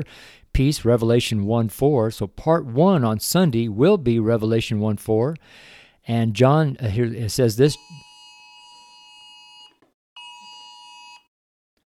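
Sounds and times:
speech: 0.0s - 8.1s
phone alert tone: 7.8s - 11.2s.

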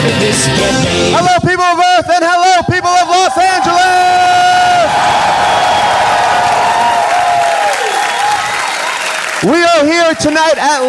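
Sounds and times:
speech: 0.4s - 1.7s, 9.4s - 10.8s
live theater audience cheering and applauding at Largo in Los Angeles: 2.5s - 10.8s
person whooping: 2.6s - 9.0s.

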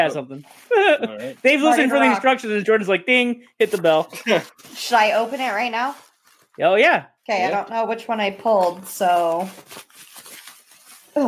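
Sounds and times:
tissue paper crinkling and rustling in a gift bag: 0.0s - 2.4s, 3.6s - 6.6s, 8.4s - 11.2s
speech: 0.0s - 10.1s.

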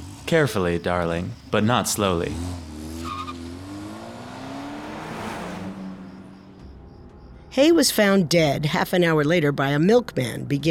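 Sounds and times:
car tires squealing: 0.0s - 7.4s
car engine revving as the vehicle pulls away: 0.0s - 7.7s
speech: 0.3s - 2.7s, 7.6s - 10.6s.

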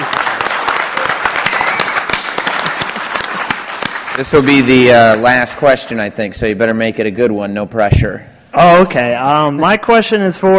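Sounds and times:
audience applause: 0.0s - 5.6s
speech: 4.2s - 10.5s.

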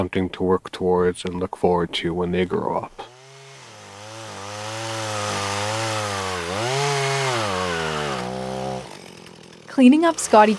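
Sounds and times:
speech: 0.0s - 3.1s, 9.8s - 10.5s
chainsaw bucking felled trees: 3.1s - 10.5s.

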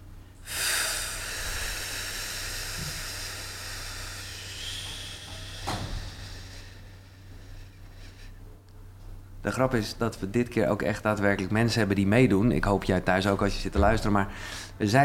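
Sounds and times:
several people exhaling together: 0.4s - 8.4s
speech: 9.5s - 15.0s.

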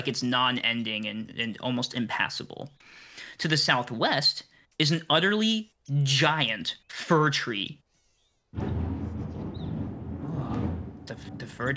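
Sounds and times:
speech: 0.0s - 7.8s, 8.5s - 8.8s, 11.1s - 11.7s
thunder from a thunderstorm: 8.6s - 11.7s.

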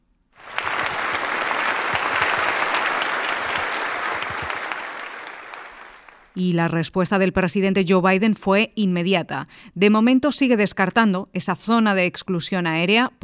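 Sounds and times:
standing ovation from congress members: 0.4s - 6.4s
speech: 6.4s - 13.2s.

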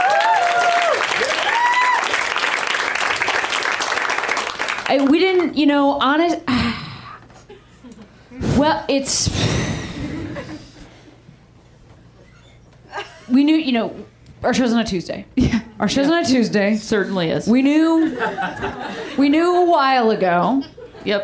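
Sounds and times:
audience applauding comics at a live comedy show: 0.0s - 5.1s
speech: 4.9s - 6.5s, 8.6s - 9.7s, 13.4s - 21.2s
laughter: 7.4s - 8.2s, 9.8s - 10.9s, 17.9s - 19.7s.

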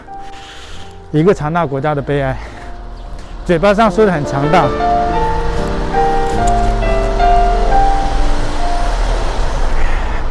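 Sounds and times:
subway train arriving: 0.0s - 10.2s
speech: 1.1s - 2.5s, 3.5s - 5.1s.

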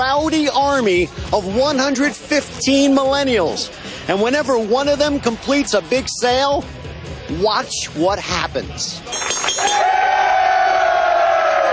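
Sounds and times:
speech: 0.0s - 10.2s
boxing bell ringing: 9.1s - 9.8s
crowd of sales staff cheering and shouting: 9.1s - 11.7s.

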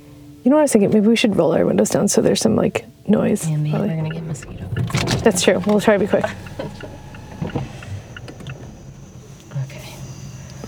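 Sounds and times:
speech: 0.4s - 6.9s
crickets chirping at night: 3.8s - 10.6s.

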